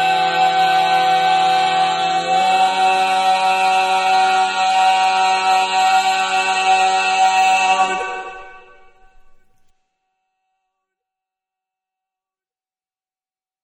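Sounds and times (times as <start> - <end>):
barbershop tags singing: 0.0 - 9.7.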